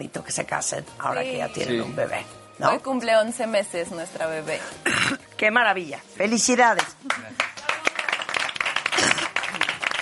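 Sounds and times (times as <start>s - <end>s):
speech: 0.0s - 7.0s
crowd applauding: 6.8s - 9.9s.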